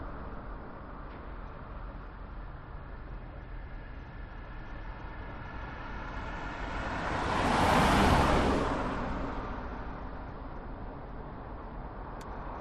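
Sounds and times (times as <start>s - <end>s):
main road traffic passing by at 60kph heard from open car window: 5.4s - 10.3s.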